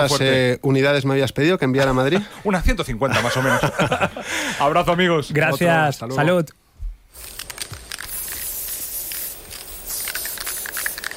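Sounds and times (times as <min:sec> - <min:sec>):
speech: 0:00.0 - 0:06.6
laughter: 0:03.1 - 0:04.5
aerosol spray paint can spraying: 0:07.1 - 0:11.1.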